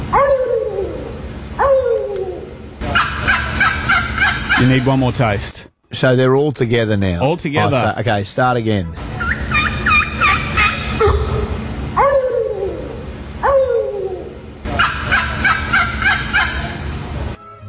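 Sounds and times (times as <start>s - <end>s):
people imitating turkey gobbles: 0.2s - 5.0s, 9.0s - 16.8s
speech: 4.6s - 9.1s.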